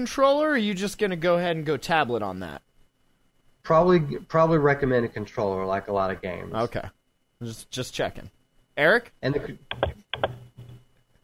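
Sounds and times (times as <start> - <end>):
speech: 0.0 - 2.7, 3.6 - 10.4
typing on a computer keyboard: 9.7 - 10.4.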